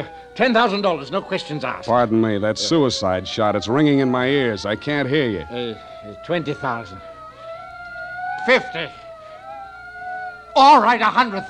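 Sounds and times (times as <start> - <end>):
speech: 0.0 - 7.1, 8.4 - 9.0, 10.6 - 11.4
police car siren wailing: 0.0 - 11.4.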